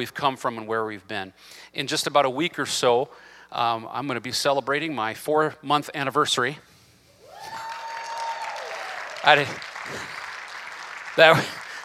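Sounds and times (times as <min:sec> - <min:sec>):
speech: 0:00.0 - 0:06.7, 0:09.2 - 0:10.2, 0:11.2 - 0:11.6
audience applause: 0:07.3 - 0:11.8.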